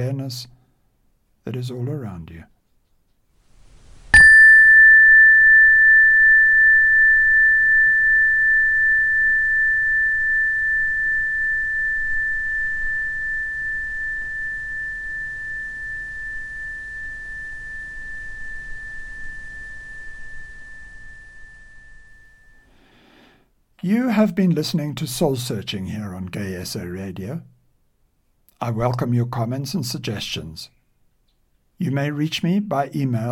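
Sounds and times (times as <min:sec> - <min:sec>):
speech: 0:00.0 - 0:00.6, 0:01.4 - 0:02.5, 0:23.8 - 0:27.5, 0:28.6 - 0:30.8, 0:31.8 - 0:33.3
meditation bell ringing: 0:04.1 - 0:22.7.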